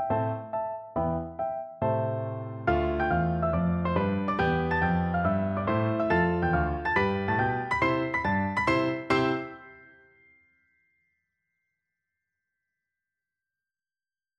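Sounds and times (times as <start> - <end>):
piano duet: 0.0 - 10.2.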